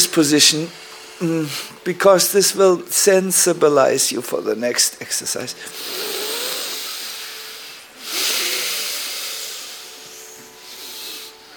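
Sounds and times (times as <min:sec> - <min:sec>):
speech: 0:00.1 - 0:06.2
deep breath during a stretching and breathing exercise: 0:05.6 - 0:11.5.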